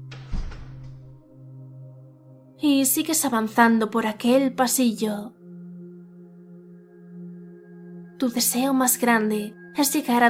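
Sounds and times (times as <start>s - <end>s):
door closing: 0.0s - 1.2s
speech: 2.6s - 5.4s, 8.2s - 10.2s.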